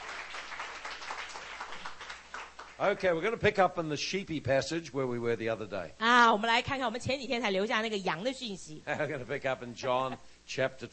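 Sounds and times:
audience applause: 0:00.0 - 0:03.1
speech: 0:02.8 - 0:10.9.

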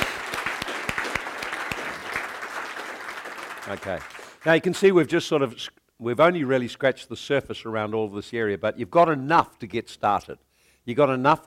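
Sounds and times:
crowd clapping: 0:00.0 - 0:04.7
speech: 0:03.7 - 0:11.4.

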